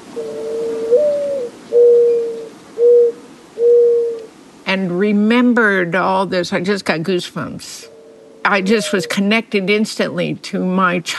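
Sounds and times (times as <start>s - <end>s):
Mourning Dove song: 0.0s - 4.4s, 7.9s - 9.2s
speech: 0.2s - 0.6s, 4.7s - 11.1s.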